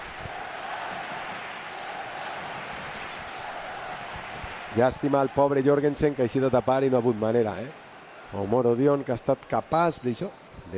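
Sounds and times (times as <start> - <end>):
football crowd chanting in the stands: 0.0 - 8.4
speech: 4.7 - 10.7.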